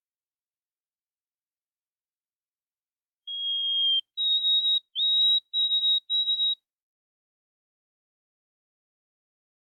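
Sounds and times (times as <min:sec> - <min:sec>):
chirp: 0:03.3 - 0:06.6.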